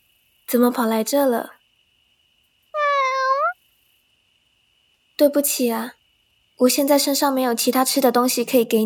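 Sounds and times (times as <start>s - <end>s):
speech: 0.5s - 1.6s, 5.2s - 6.0s, 6.6s - 8.8s
cat meowing: 2.8s - 3.6s.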